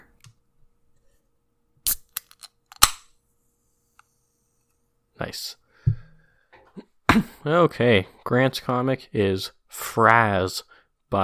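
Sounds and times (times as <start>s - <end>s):
drink can being cracked open: 1.8s - 3.0s
speech: 5.2s - 5.6s, 7.2s - 11.2s.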